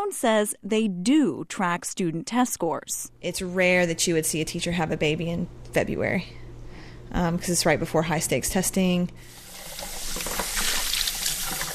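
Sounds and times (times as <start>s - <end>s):
speech: 0.0s - 6.4s, 7.1s - 9.4s
running water at a kitchen sink: 9.2s - 11.7s.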